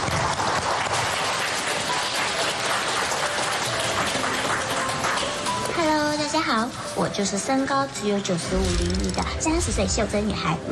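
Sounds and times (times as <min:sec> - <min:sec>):
crowd applauding: 0:00.0 - 0:06.4
speech: 0:06.5 - 0:10.7.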